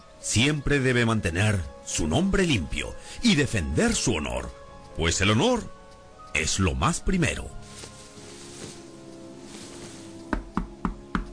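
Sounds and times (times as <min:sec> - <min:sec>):
speech: 0:00.2 - 0:07.7
knocking on a door: 0:10.3 - 0:11.3.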